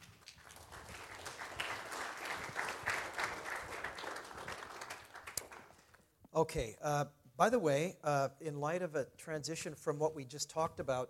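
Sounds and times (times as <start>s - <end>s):
audience applause welcoming a speaker back: 0.0s - 5.9s
speech: 6.4s - 11.0s.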